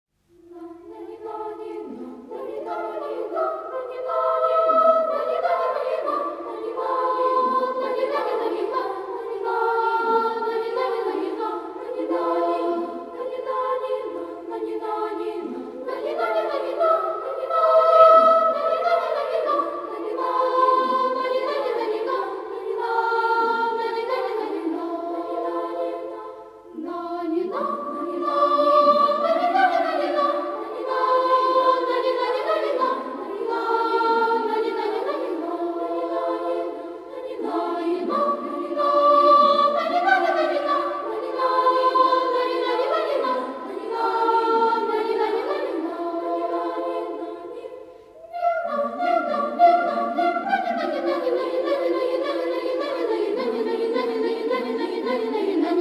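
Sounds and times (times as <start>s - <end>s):
large children's choir singing: 0.2s - 55.8s.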